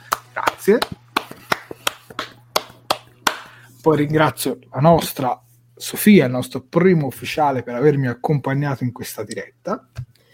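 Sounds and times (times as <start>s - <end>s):
hand clapping at the close of a late-night live show: 0.0s - 3.6s
faint low hum: 0.0s - 10.3s
speech: 0.6s - 1.0s, 3.8s - 10.1s.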